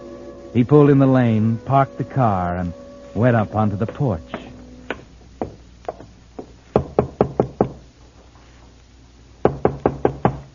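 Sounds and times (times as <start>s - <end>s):
speech: 0.5s - 4.4s
knocking on a door: 5.4s - 7.8s, 9.4s - 10.5s.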